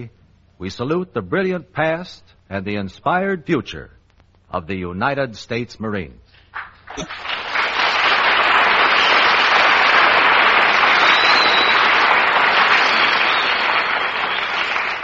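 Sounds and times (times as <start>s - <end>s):
speech: 0.0s - 7.4s
audience applause: 7.1s - 15.0s.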